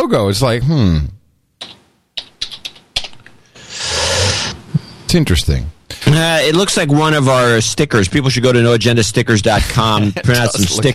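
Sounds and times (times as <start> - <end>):
speech: 0.1 - 1.8, 5.1 - 10.9
typing into a browser address bar on a computer keyboard: 1.6 - 3.3.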